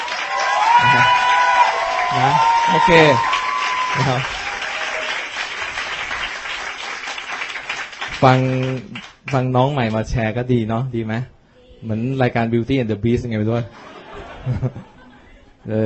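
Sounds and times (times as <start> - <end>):
audience clapping loudly: 0.0 - 10.0
speech: 2.1 - 4.4, 8.2 - 13.8, 14.4 - 14.9, 15.6 - 15.8
laughter: 13.7 - 15.7.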